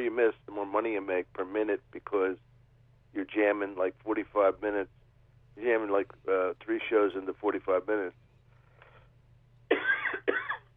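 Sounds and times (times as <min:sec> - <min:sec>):
speech: 0:00.0 - 0:02.5, 0:03.1 - 0:05.0, 0:05.6 - 0:08.2
faint low hum: 0:00.0 - 0:10.7
harsh coughs: 0:09.7 - 0:10.7.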